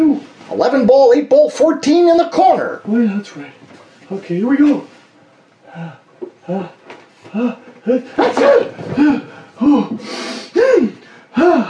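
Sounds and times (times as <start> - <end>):
speech: 0.6 - 4.9, 5.7 - 11.6
sneeze: 8.2 - 8.8.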